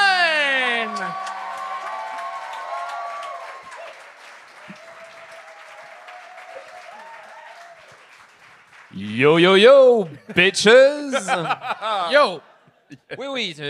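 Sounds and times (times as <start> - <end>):
audience cheering with whoop and scattered shouts: 0.0 - 7.9
audience applause: 0.0 - 9.2
speech: 9.1 - 13.6
laughter: 10.1 - 13.2.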